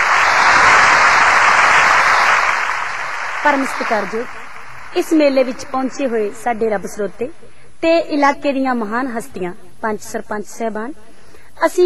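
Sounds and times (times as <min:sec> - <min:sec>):
audience applause for a female singer at a fair stage: 0:00.0 - 0:06.9
speech: 0:03.4 - 0:11.8.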